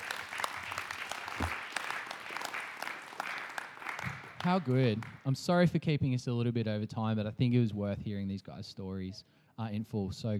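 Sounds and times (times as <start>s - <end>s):
applause: 0.0s - 5.3s
speech: 4.4s - 10.3s.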